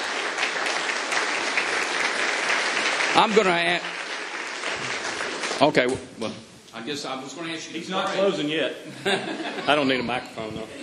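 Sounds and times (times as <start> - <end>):
audience applause after a Christmas performance: 0.0 - 5.9
speech: 3.2 - 4.0, 5.6 - 10.8
laughter: 8.9 - 10.8.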